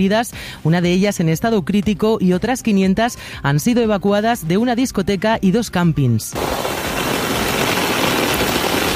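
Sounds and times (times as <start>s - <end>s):
speech: 0.0s - 6.8s
torrential downpour of rain in the south of the province: 6.4s - 8.9s.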